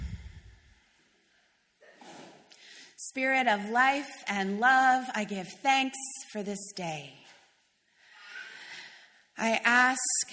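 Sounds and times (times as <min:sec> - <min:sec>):
low rumble: 0:00.0 - 0:00.8
slow deep breathing together in a guided meditation: 0:00.0 - 0:00.8, 0:07.9 - 0:09.3
speech: 0:03.1 - 0:07.2, 0:09.4 - 0:10.3.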